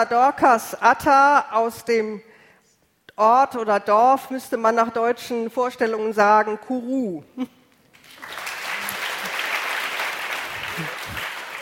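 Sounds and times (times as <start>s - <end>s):
speech: 0.0s - 2.3s, 3.2s - 7.6s
sustained applause for two visiting sisters: 8.0s - 11.6s.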